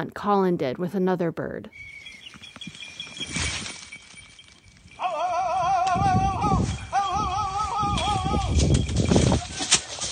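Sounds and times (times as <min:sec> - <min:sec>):
speech: 0:00.0 - 0:02.0
rustling and crunching footsteps outdoors: 0:02.2 - 0:05.0, 0:07.6 - 0:10.1
falconer's warbling call signalling prey escaping to hawk: 0:05.0 - 0:08.5.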